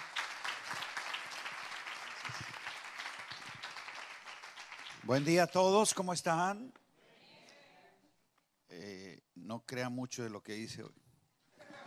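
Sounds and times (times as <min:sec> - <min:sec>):
audience applause: 0:00.0 - 0:05.4
speech: 0:05.0 - 0:06.8, 0:09.7 - 0:11.0.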